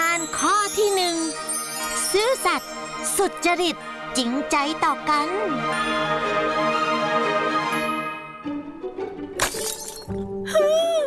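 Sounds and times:
music: 0.0 - 11.0
speech: 2.1 - 7.4
vase shattering: 9.4 - 10.2.

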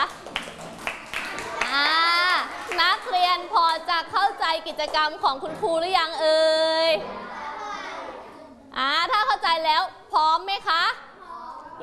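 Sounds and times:
schoolchildren clapping in a classroom: 0.0 - 3.9
speech: 3.9 - 7.3, 8.8 - 11.0
child's voice: 7.0 - 8.3, 11.0 - 11.8.

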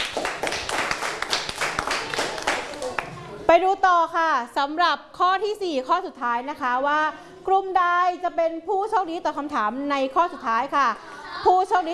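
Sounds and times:
group clapping hands: 0.0 - 3.2
speech: 3.5 - 11.9.

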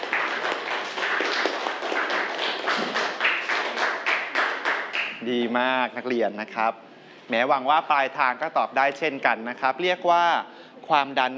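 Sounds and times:
students clapping hands: 0.0 - 5.2
speech: 5.3 - 11.3.

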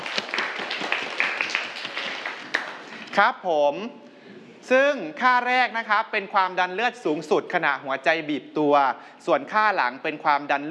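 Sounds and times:
classroom students clapping: 0.0 - 3.1
speech: 3.2 - 10.6.

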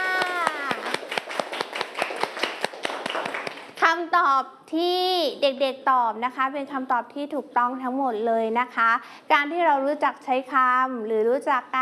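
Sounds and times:
children clapping hands: 0.0 - 3.8
speech: 4.2 - 11.8.

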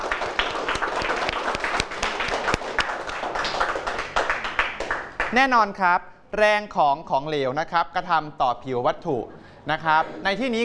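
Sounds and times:
students clapping: 0.0 - 5.4
speech: 5.3 - 10.6.

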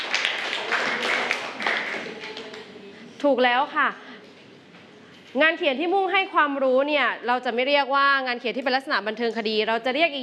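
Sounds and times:
classroom clapping: 0.0 - 2.7
speech: 3.2 - 4.1, 5.3 - 10.2.

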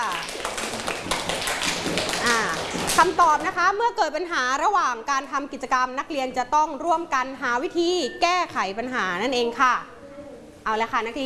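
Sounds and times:
classroom students clapping for a classmate: 0.0 - 3.2
speech: 3.0 - 10.0, 10.6 - 11.2.

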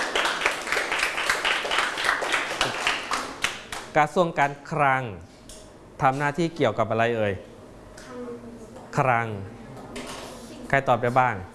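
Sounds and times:
group of children clapping in a classroom: 0.0 - 3.9
speech: 3.9 - 5.3, 6.0 - 7.5, 9.0 - 9.6, 10.7 - 11.5.

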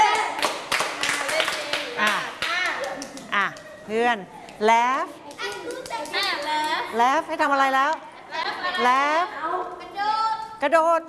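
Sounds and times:
hand clapping: 0.1 - 3.8, 5.2 - 6.9
speech: 3.9 - 5.2, 6.0 - 8.1, 8.8 - 9.4, 10.6 - 11.0.

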